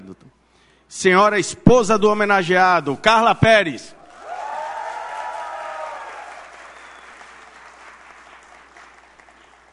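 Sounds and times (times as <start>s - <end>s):
speech: 0.9s - 4.0s
crowd cheering and shouting: 4.2s - 6.4s.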